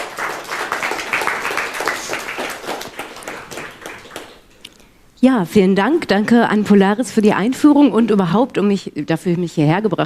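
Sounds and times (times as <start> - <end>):
audience applause: 0.0 - 4.5
speech: 5.2 - 10.0.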